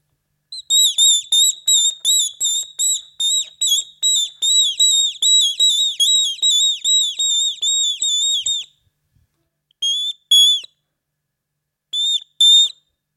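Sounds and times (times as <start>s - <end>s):
person whistling an imitation of a tit's song: 0.6s - 8.8s, 9.8s - 10.8s.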